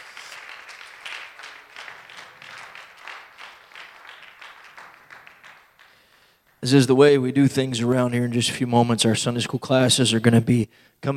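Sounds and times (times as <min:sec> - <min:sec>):
audience applause: 0:00.0 - 0:06.6
speech: 0:06.6 - 0:11.1.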